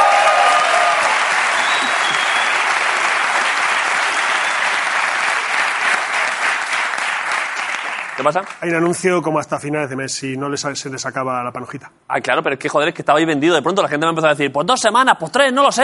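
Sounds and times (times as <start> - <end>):
crowd applause: 0.0 - 8.6
speech: 8.2 - 15.8.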